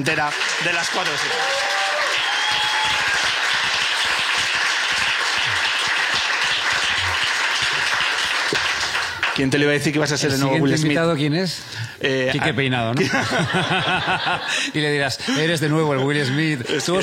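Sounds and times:
speech: 0:00.0 - 0:02.0, 0:09.4 - 0:17.0
audience applause: 0:00.0 - 0:10.0
audience whistles and cheers: 0:01.3 - 0:03.4
laughter: 0:12.3 - 0:17.0.

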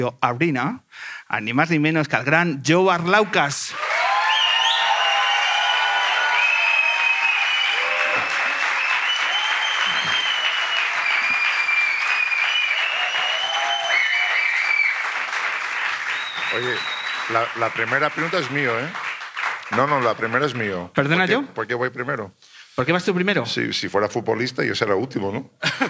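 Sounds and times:
speech: 0:00.0 - 0:03.9, 0:17.3 - 0:19.0, 0:19.7 - 0:25.8
theatre audience applause: 0:03.7 - 0:20.9
laughter: 0:25.6 - 0:25.8.

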